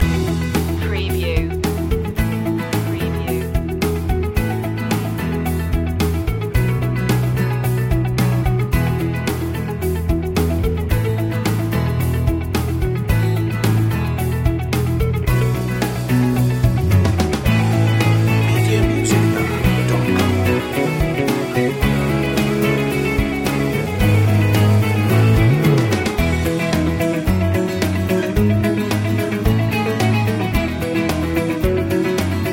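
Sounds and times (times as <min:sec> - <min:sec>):
motivational music loop: 0:00.0 - 0:32.5.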